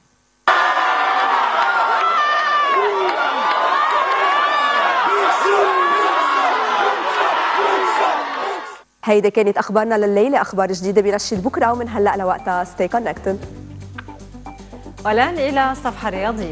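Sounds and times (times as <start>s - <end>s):
students cheering and shouting around a dancing policeman in Mâcon: 0.4s - 8.8s
students laughing: 0.5s - 8.8s
speech: 9.1s - 13.6s, 15.0s - 16.5s.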